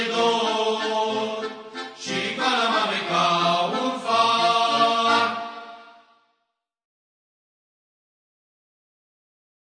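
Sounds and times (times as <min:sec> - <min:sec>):
waltz music: 0:00.0 - 0:05.9.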